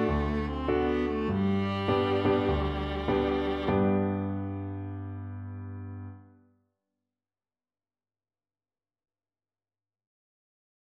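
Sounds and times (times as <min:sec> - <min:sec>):
viola: 0:00.0 - 0:06.3.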